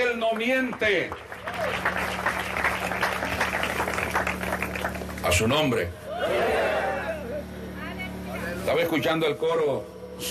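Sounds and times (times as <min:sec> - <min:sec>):
audience applause: 0:00.0 - 0:05.8
speech: 0:00.2 - 0:02.3, 0:05.2 - 0:06.7, 0:08.7 - 0:10.2
low hum: 0:01.2 - 0:10.2.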